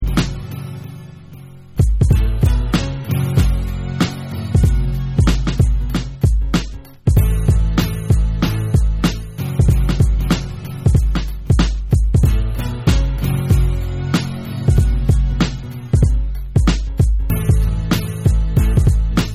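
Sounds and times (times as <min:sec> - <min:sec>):
music beat: 0:00.0 - 0:19.3.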